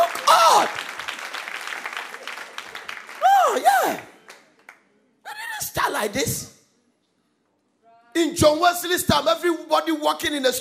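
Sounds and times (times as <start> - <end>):
audience clapping: 0.0 - 4.9
speech: 6.0 - 6.6, 8.4 - 10.5.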